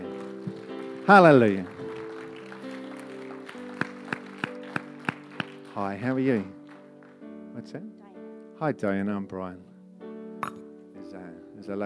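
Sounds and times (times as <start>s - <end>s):
audience applause: 0.0s - 7.2s
speech: 1.1s - 1.7s, 5.8s - 6.6s, 7.6s - 8.0s, 8.6s - 9.7s, 11.6s - 11.8s.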